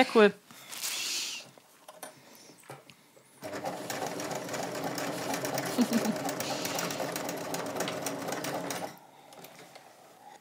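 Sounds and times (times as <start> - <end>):
speech: 0.0 - 0.4, 5.8 - 6.3
sewing machine stitching: 3.4 - 9.6
laughter: 5.6 - 6.7.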